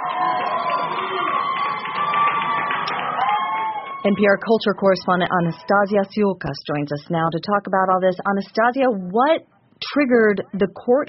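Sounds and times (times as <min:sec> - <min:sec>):
crowd cheering outside a Baltimore courtroom: 0:00.0 - 0:06.1
speech: 0:04.0 - 0:11.0.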